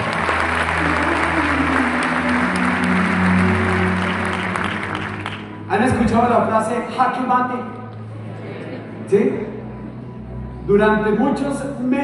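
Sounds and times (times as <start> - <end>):
audience applause: 0.0 - 5.7
speech: 6.2 - 7.8, 9.1 - 9.5, 10.7 - 12.0.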